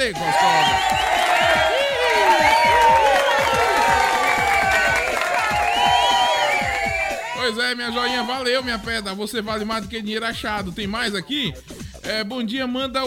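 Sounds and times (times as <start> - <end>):
speech: 0.0 - 1.0, 7.5 - 13.0
round of applause: 0.0 - 7.4.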